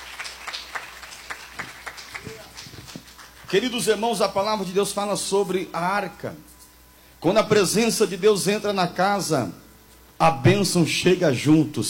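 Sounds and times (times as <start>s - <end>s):
audience applauding: 0.0s - 4.0s
speech: 3.5s - 6.5s, 7.2s - 9.6s, 10.2s - 11.8s.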